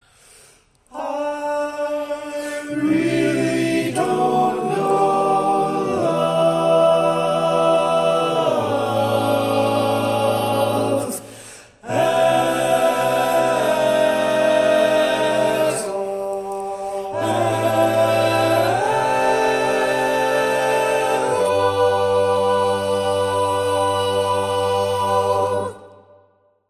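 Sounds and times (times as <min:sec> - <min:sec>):
tenor singing: 0:00.9 - 0:26.1.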